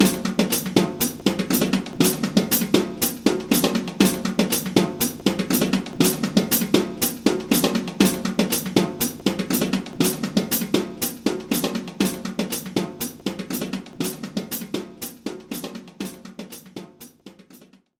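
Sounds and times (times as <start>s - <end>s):
drums: 0.0s - 17.9s.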